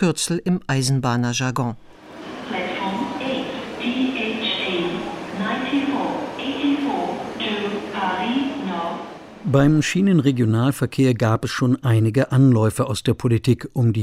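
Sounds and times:
speech: 0.0s - 2.0s, 9.4s - 14.0s
faint rumble of train station noise: 1.9s - 10.5s
train station public address loudspeaker announcement: 2.1s - 9.8s.

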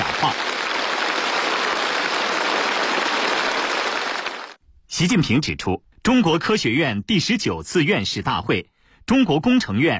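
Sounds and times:
applause at a joint conference of Chinese Academy of Sciences and Engineering academicians: 0.0s - 4.6s
speech: 5.0s - 9.9s.

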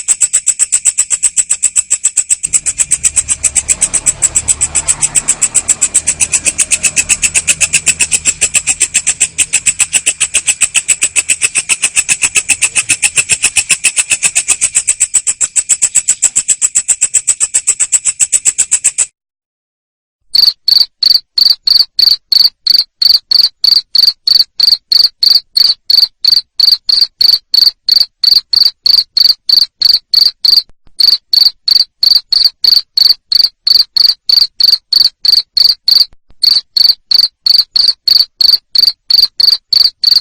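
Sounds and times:
cricket chirping: 0.0s - 19.1s, 20.3s - 40.2s
faster harsher pulsing trill: 0.0s - 19.1s.

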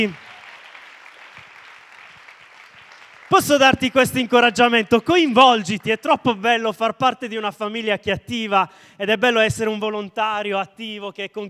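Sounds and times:
speech: 0.0s - 0.2s, 3.3s - 11.4s
audience applause for volunteers at a community gathering: 0.0s - 5.9s.

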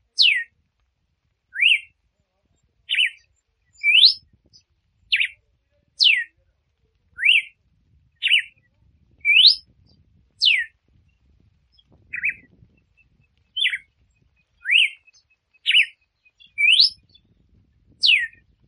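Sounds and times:
female red-cowled cardinal singing to stimulate the male: 0.2s - 0.5s, 1.5s - 1.9s, 2.9s - 5.4s, 6.0s - 6.3s, 7.1s - 7.6s, 8.2s - 18.6s.

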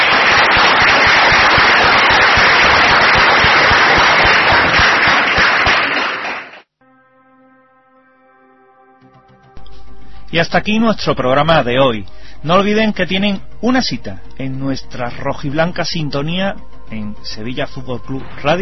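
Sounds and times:
audience applause: 0.0s - 6.7s
speech: 10.3s - 18.6s.

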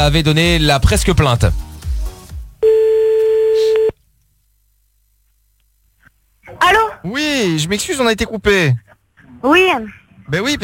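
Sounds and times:
speech: 0.0s - 1.7s, 6.7s - 10.6s
telephone line tone while calling back: 2.6s - 4.0s.

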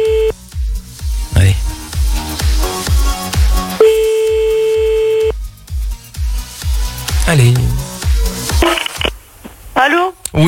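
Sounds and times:
telephone line tone while placing a call: 0.0s - 0.3s, 3.8s - 5.3s
loud rhythmic thumping music beats: 0.0s - 8.7s.

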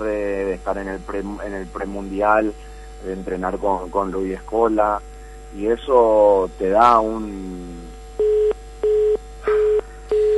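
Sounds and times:
speech: 0.0s - 7.9s
telephone busy signal after a call is cut off: 8.2s - 10.3s.

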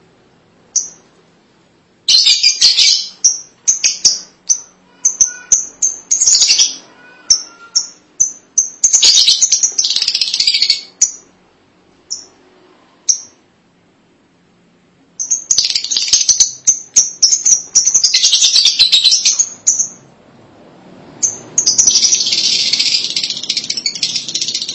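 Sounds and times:
lovebird chirping and chattering: 0.7s - 1.0s, 2.1s - 11.3s, 12.1s - 12.4s, 13.1s - 13.4s, 15.2s - 20.0s, 21.2s - 24.7s.

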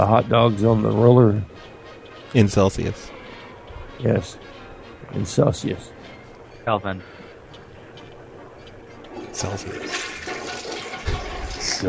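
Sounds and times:
speech: 0.0s - 1.7s, 2.3s - 3.2s, 4.0s - 6.0s, 6.6s - 7.2s, 9.4s - 10.0s, 11.1s - 11.8s
toilet flushing: 9.2s - 11.8s.

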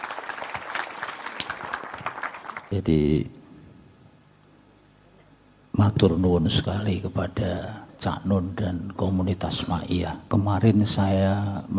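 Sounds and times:
crowd applauding a speaker at a gathering: 0.0s - 2.7s
speech: 2.7s - 3.4s, 5.8s - 11.7s.

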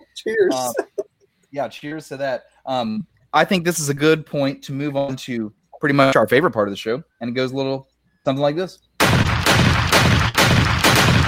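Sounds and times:
speech: 0.2s - 0.9s, 1.5s - 8.9s
gunshots: 9.0s - 11.2s.

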